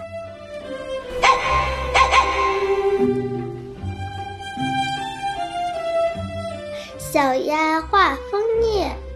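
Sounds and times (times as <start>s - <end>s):
gentle melodic music: 0.0s - 9.1s
dog barking: 1.2s - 3.0s
speech: 7.2s - 9.0s.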